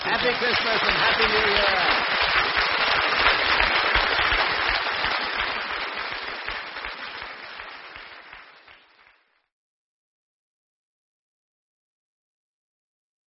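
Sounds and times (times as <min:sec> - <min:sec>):
speech: 0:00.0 - 0:03.1
studio audience applause: 0:00.0 - 0:09.5.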